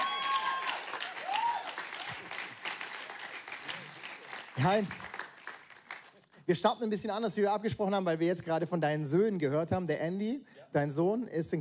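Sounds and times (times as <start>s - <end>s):
audience applause: 0.0s - 6.2s
speech: 4.6s - 5.1s, 6.5s - 11.5s.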